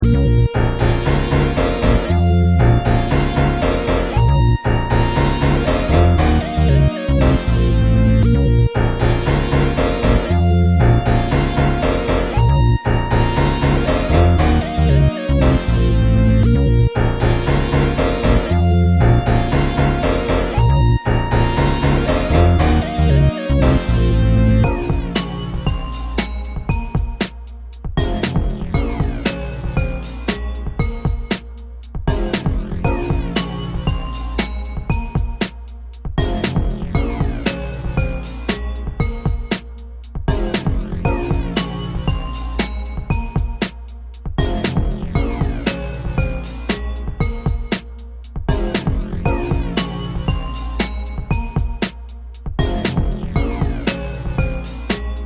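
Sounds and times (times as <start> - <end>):
instrumental music: 0.0 - 55.2.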